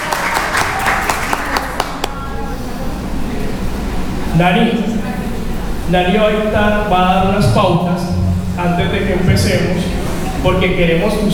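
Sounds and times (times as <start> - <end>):
crowd applause: 0.0 - 3.8
crowd murmuring: 0.0 - 11.3
speech: 4.4 - 4.9, 5.9 - 11.3.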